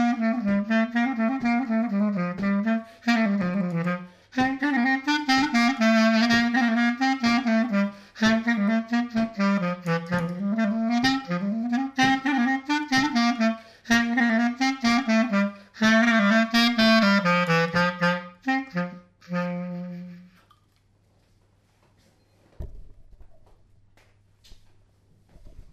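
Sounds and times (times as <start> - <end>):
clarinet: 0.0 - 20.4.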